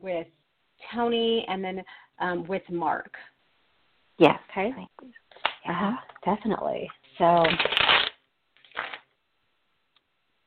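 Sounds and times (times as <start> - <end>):
speech: 0.0 - 3.3, 4.2 - 7.8
playing cards handled and shuffled for a card reading: 7.2 - 9.1.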